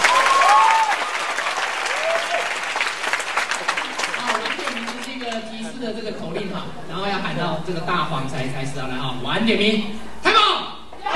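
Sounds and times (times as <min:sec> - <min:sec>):
audience applause: 0:00.0 - 0:05.7
speech: 0:06.7 - 0:10.0.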